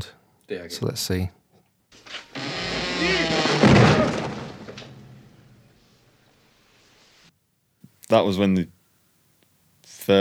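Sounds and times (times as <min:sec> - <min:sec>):
speech: 0:00.0 - 0:02.2, 0:08.1 - 0:08.8, 0:10.1 - 0:10.2
bookshelf toppling over in the Ghostbusters library scene: 0:02.0 - 0:06.2.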